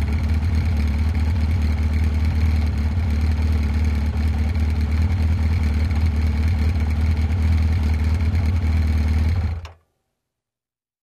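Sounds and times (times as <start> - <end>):
motorcycle starting, idling and turning off: 0.0 - 9.8.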